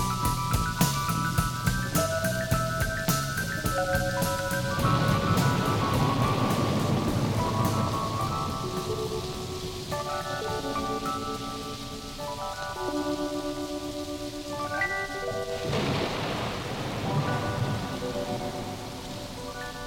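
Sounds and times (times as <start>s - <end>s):
heavy rain: 0.0s - 19.8s
low thunder rumble: 0.0s - 19.8s
sustained keyboard chords: 0.0s - 19.8s.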